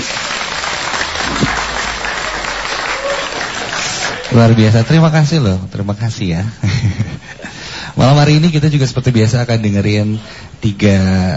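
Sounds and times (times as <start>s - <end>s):
crowd applauding: 0.0s - 5.3s
speech: 4.3s - 7.0s, 8.0s - 11.3s.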